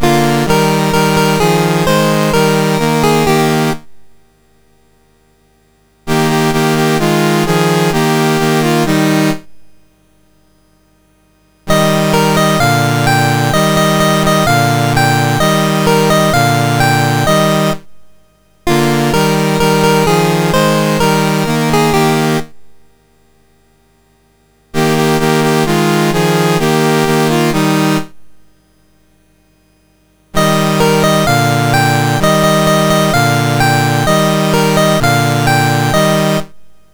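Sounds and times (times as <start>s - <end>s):
MOS6581R4 SID chip national anthem music: 0.0s - 3.8s, 6.1s - 9.4s, 11.7s - 17.9s, 18.7s - 22.6s, 24.8s - 28.2s, 30.4s - 36.7s.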